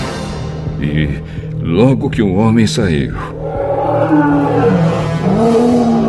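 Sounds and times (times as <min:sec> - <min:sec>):
speech: 0:00.8 - 0:04.4
lion roaring: 0:03.2 - 0:06.0.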